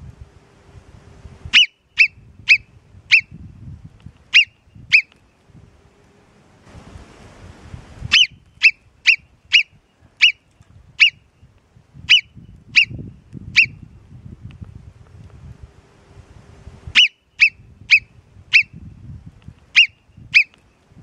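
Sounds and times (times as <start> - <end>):
Alpine marmot Marmota marmota giving shrill whistles: 1.5 - 3.4, 4.3 - 5.1, 8.1 - 10.4, 11.0 - 11.2, 12.1 - 13.0, 13.6 - 13.8, 17.0 - 18.8, 19.8 - 20.6.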